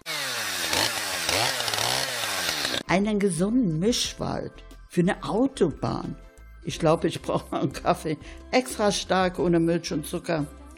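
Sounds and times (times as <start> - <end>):
chainsaw felling trees in a forest: 0.0 - 2.9
speech: 2.9 - 10.7.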